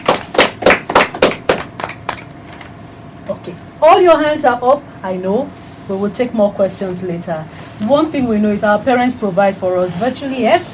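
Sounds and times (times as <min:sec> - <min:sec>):
children clapping: 0:00.0 - 0:02.7
speech: 0:03.4 - 0:10.7.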